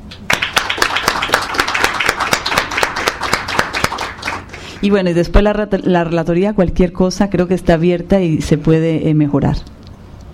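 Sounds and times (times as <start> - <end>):
audience applause: 0.3 - 4.8
speech: 4.8 - 9.7.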